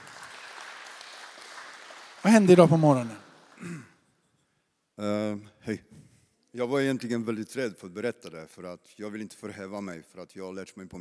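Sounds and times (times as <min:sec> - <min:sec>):
audience applause: 0:00.0 - 0:03.7
speech: 0:02.2 - 0:03.9, 0:05.0 - 0:05.9, 0:06.6 - 0:10.9.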